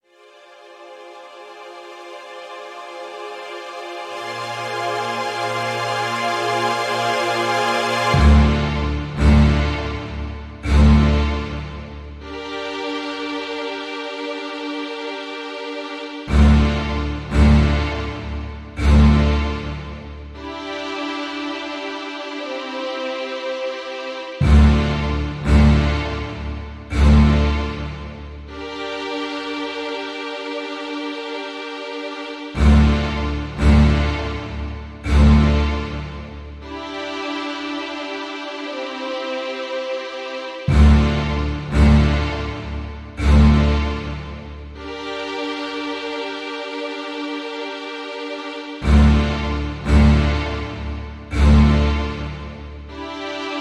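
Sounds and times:
ambient background intro music: 0.1 - 53.5.

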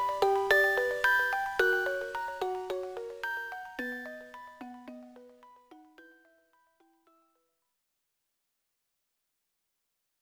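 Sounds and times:
character background music: 0.0 - 7.1.

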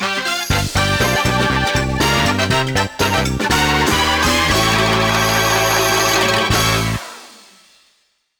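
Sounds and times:
mini-game winner jingle: 0.3 - 7.0.

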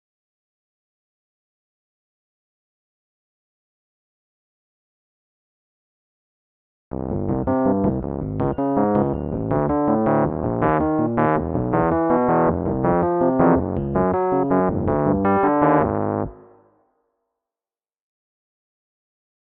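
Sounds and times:
electric piano: 6.9 - 16.6.

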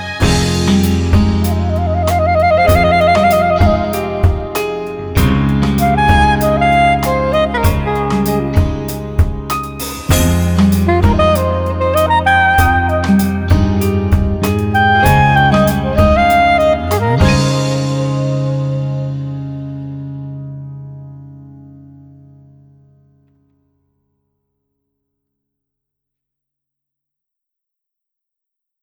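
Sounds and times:
karaoke backing track: 0.0 - 20.2.

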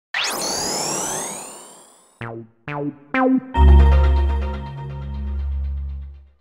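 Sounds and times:
Sony PlayStation logo sound: 0.2 - 6.2.

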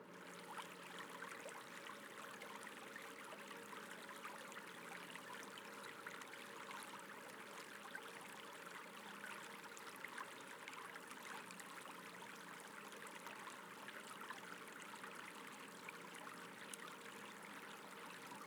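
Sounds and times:
fountain water: 0.1 - 18.4.

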